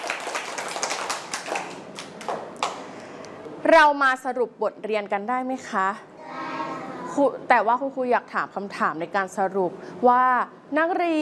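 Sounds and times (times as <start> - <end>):
children clapping for themselves: 0.0 - 3.0
speech: 3.7 - 6.1, 7.2 - 11.2.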